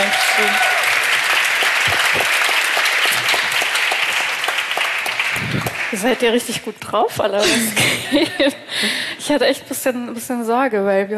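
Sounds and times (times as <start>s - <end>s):
audience applause: 0.0s - 6.6s
speech: 6.0s - 11.1s.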